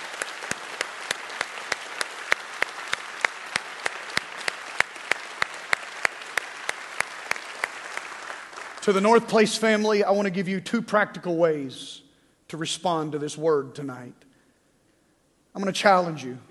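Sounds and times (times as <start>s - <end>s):
church audience applauding in steady claps: 0.0s - 9.5s
speech: 8.9s - 14.3s, 15.6s - 16.4s.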